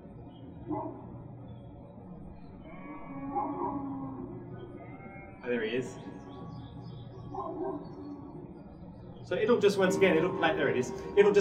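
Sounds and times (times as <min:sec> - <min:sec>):
steady low hum: 0:00.0 - 0:11.3
dog barking in farmyard ambience: 0:00.6 - 0:01.1, 0:07.3 - 0:08.0
speech: 0:00.7 - 0:01.1, 0:05.5 - 0:06.1, 0:09.3 - 0:11.3.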